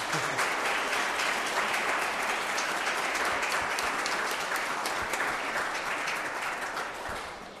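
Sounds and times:
applause: 0.0s - 7.5s.

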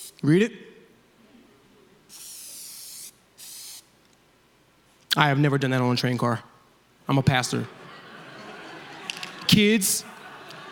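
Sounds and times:
speech: 0.2s - 0.7s, 5.2s - 6.5s, 7.1s - 7.8s, 9.5s - 10.2s
aerosol spray paint can spraying: 2.1s - 3.9s
laughter: 7.5s - 10.7s.

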